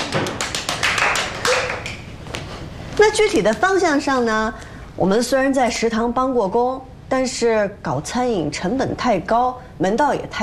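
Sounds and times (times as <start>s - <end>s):
a few people clapping in irregular bursts: 0.0s - 2.6s
speech: 3.0s - 10.4s.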